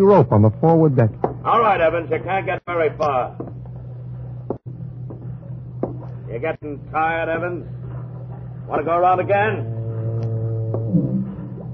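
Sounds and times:
speech: 0.0 - 3.4, 6.3 - 7.8, 8.7 - 9.8
deep foghorn blast: 9.6 - 11.7.

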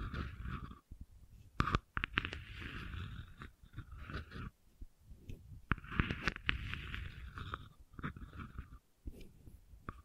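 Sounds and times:
gentle scratching: 0.0 - 10.0.

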